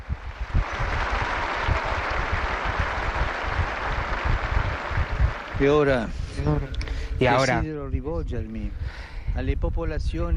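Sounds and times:
large crowd applause: 0:00.0 - 0:06.3
speech: 0:05.6 - 0:10.3.

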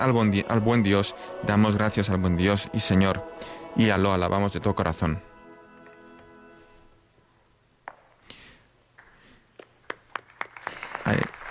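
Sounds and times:
speech: 0:00.0 - 0:05.3, 0:11.1 - 0:11.4
sustained tones: 0:00.0 - 0:07.7
audience applause in church: 0:09.0 - 0:11.4.

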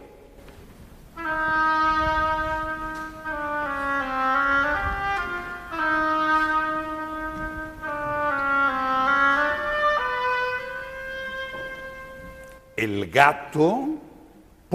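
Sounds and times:
solo oboe playing a slow plaintive theme: 0:01.1 - 0:12.8
speech: 0:12.9 - 0:13.9.

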